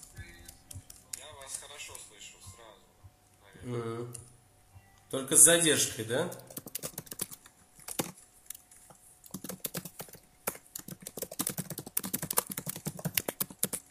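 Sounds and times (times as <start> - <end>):
faint steady hum: 0.0 - 13.8
speech: 3.6 - 4.2, 5.1 - 6.5
typing on a computer keyboard: 6.3 - 8.6, 9.2 - 13.8.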